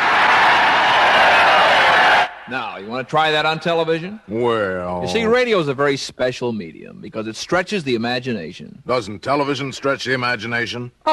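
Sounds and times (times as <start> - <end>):
crowd of extras cheering: 0.0 - 3.3
speech: 2.5 - 11.1.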